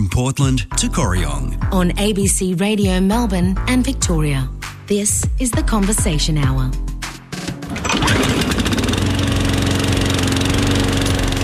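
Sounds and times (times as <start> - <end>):
speech: 0.1 - 6.9
lawn mower engine starting and running: 7.6 - 11.4.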